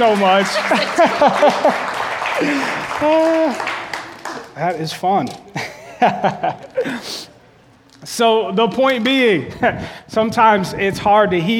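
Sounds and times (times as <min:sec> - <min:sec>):
speech: 0:00.0 - 0:03.7, 0:04.6 - 0:07.3, 0:08.0 - 0:11.5
laughter: 0:00.0 - 0:04.6, 0:05.5 - 0:07.7
round of applause: 0:00.0 - 0:04.8.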